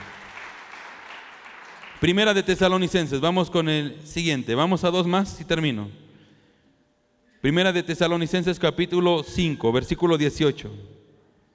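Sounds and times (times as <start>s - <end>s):
audience clapping hands: 0.0s - 2.4s
speech: 2.0s - 6.0s, 7.4s - 11.0s.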